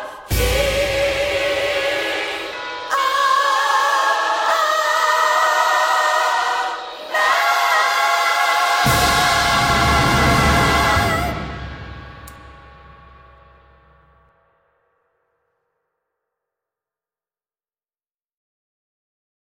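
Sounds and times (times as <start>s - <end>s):
soprano singing Christmas carol: 0.0s - 12.5s.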